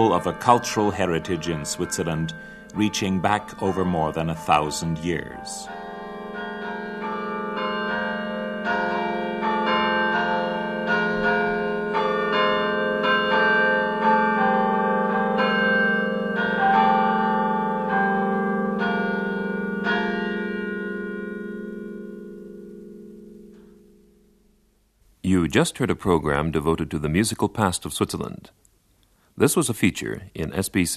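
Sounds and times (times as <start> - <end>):
speech: 0.0 - 5.8, 25.5 - 28.6, 29.4 - 30.9
carillon melody in Switzerland's Rhone Valley: 0.0 - 24.5.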